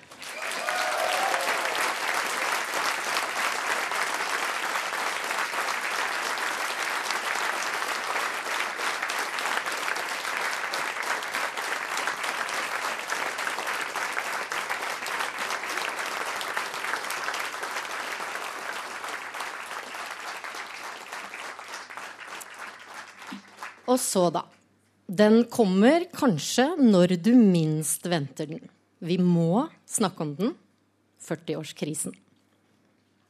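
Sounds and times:
audience applause: 0:00.0 - 0:23.9
speech: 0:23.9 - 0:30.6, 0:31.3 - 0:32.2.

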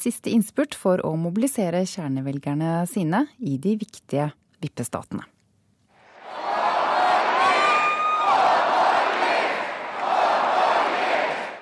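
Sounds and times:
speech: 0:00.0 - 0:05.4
large rally crowd roaring and cheering: 0:06.0 - 0:11.6
people shouting: 0:06.1 - 0:11.6.

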